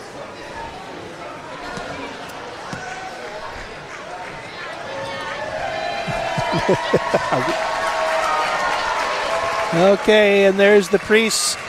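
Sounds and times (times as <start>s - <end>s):
crowd applauding: 4.2s - 11.6s
laughter: 5.8s - 7.8s
speech: 6.7s - 7.7s, 9.7s - 11.6s.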